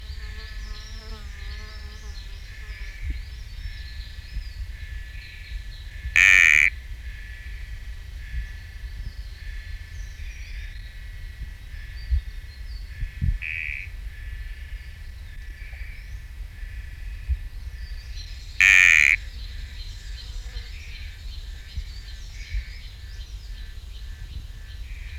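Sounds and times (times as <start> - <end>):
background chirping chorus of insects or frogs: 0.0 - 25.1
sticky frog buzzing call: 6.1 - 7.4, 13.4 - 13.9, 18.6 - 19.3.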